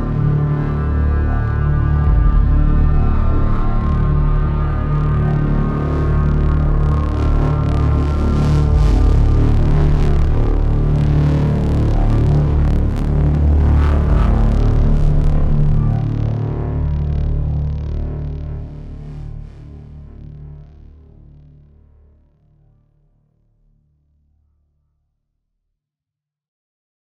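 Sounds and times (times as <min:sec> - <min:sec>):
sci-fi horror drone from a video game: 0:00.0 - 0:19.8.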